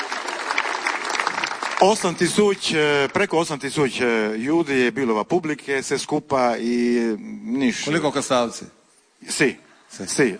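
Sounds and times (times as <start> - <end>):
audience applause at the Kastav cultural summer festival: 0.0 - 3.3
speech: 1.8 - 10.3.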